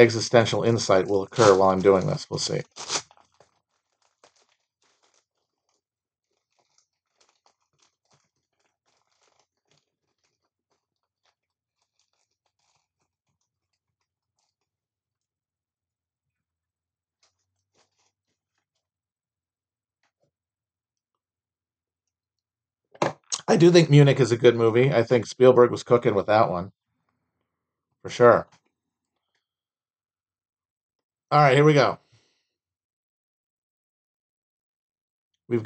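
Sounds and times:
speech: 0.0s - 3.1s, 23.5s - 26.8s, 28.0s - 28.6s, 31.3s - 32.0s, 35.5s - 35.6s
wrapper crinkling as a pack of cards is torn open: 0.3s - 15.2s, 17.1s - 19.0s.

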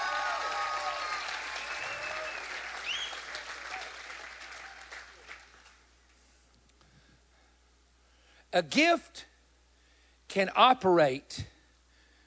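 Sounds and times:
high whistles and cheers from a crowd: 0.0s - 5.0s
crowd applauding: 0.0s - 5.8s
speech: 8.5s - 9.3s, 10.3s - 11.5s.

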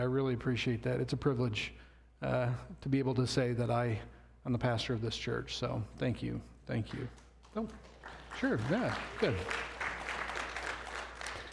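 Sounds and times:
speech: 0.0s - 9.7s
audience applause: 7.6s - 11.5s.

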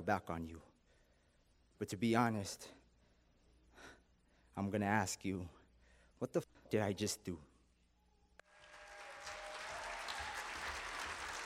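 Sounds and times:
speech: 0.0s - 0.7s, 1.8s - 2.8s, 4.6s - 5.6s, 6.2s - 7.5s
crowd applauding: 8.4s - 11.4s.

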